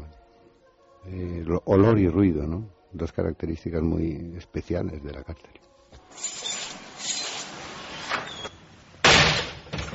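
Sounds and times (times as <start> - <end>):
speech: 1.1 - 6.3
heavy metal prison cell door grinding and sliding: 6.1 - 9.9
heavy metal prison cell door slamming shut: 8.0 - 9.9.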